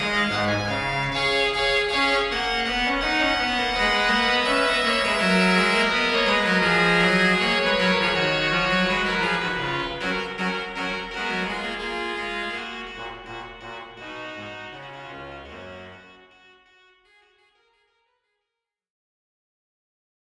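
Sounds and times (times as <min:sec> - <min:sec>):
pipe organ playing in Arouca: 0:00.0 - 0:16.2.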